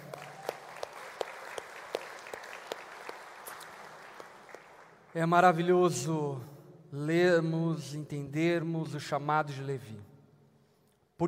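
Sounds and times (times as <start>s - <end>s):
audience applause: 0.0s - 5.0s
speech: 5.2s - 10.1s.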